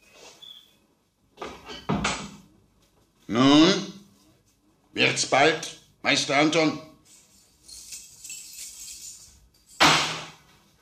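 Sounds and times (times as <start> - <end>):
speech: 3.3 - 3.8, 5.0 - 6.9
bunch of keys jingling: 7.1 - 9.8.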